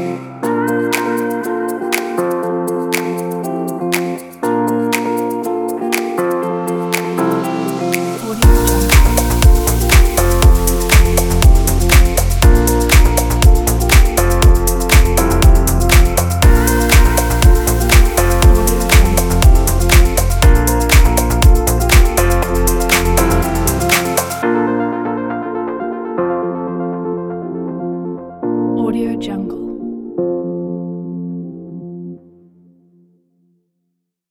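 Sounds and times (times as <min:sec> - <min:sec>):
fashion summer house music: 0:00.0 - 0:26.2.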